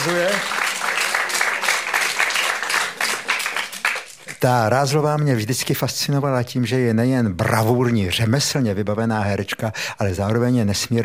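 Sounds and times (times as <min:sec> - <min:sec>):
speech: 0:00.0 - 0:00.6, 0:04.4 - 0:11.0
audience applause: 0:00.0 - 0:04.4.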